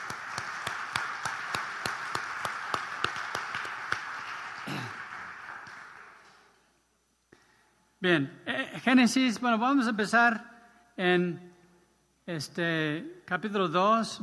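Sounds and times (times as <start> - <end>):
crowd applauding: 0.0 - 6.6
sharp evenly spaced claps: 0.0 - 6.6
speech: 8.0 - 11.5, 12.3 - 14.2.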